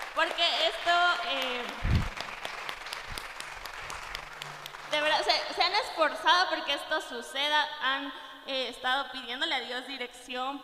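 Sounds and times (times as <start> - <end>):
audience applause: 0.0 - 5.6
speech: 0.2 - 1.9, 5.2 - 10.6.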